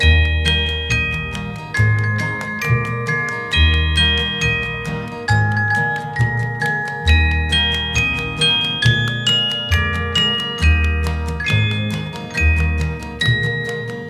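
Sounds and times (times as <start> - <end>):
music: 0.0 - 14.0.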